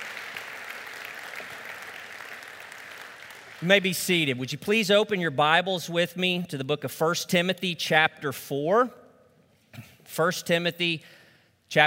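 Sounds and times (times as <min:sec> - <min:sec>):
round of applause: 0:00.0 - 0:04.4
speech: 0:03.6 - 0:09.0, 0:09.8 - 0:11.8.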